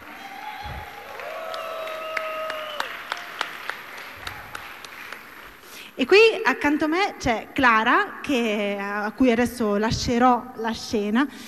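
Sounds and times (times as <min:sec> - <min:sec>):
audience applause: 0:00.0 - 0:05.6
speech: 0:06.0 - 0:11.4.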